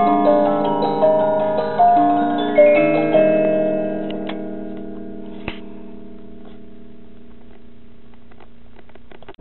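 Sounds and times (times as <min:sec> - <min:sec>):
music box: 0:00.0 - 0:07.2.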